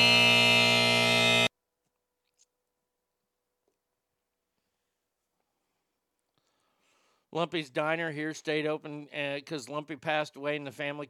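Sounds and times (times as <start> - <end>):
harsh steady electronic buzzer sound effect: 0.0 - 1.5
speech: 7.3 - 11.0.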